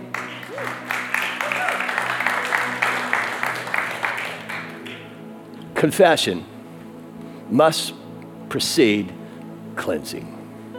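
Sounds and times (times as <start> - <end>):
audience applauding: 0.0 - 5.2
speech: 5.8 - 6.5, 7.5 - 9.2, 9.8 - 10.3.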